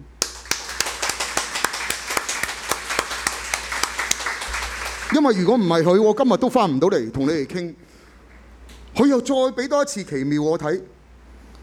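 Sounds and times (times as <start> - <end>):
audience clapping: 0.0 - 5.5
speech: 5.1 - 7.9, 9.0 - 11.0.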